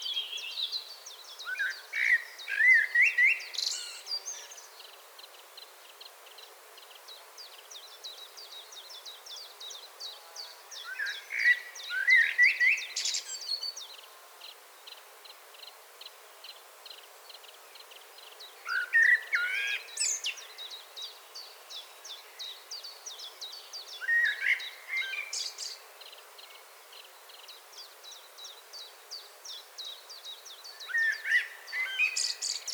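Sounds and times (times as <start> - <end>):
common blackbird song: 0.0 - 5.0, 6.8 - 14.6, 16.5 - 32.7.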